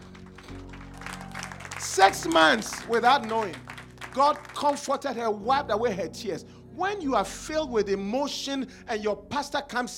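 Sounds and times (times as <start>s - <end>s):
audience clapping: 0.0s - 4.9s
low keyboard chords: 0.0s - 9.9s
speech: 1.8s - 9.9s.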